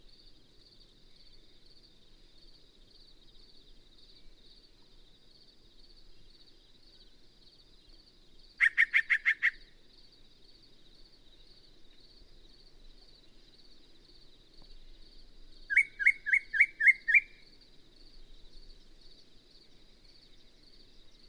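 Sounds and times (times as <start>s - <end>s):
Yellow-breasted Chat calling: 8.6s - 9.7s, 15.7s - 17.4s.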